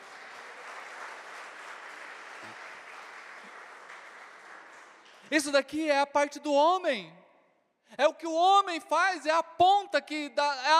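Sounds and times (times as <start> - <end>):
crowd applauding: 0.0 - 5.4
speech: 5.3 - 7.2, 7.9 - 10.7.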